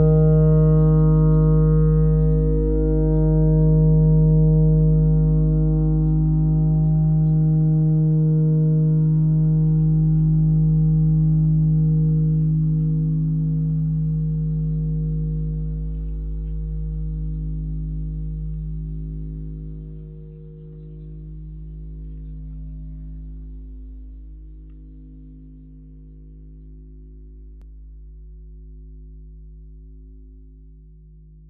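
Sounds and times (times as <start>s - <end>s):
clarinet notes: 0.0s - 24.1s.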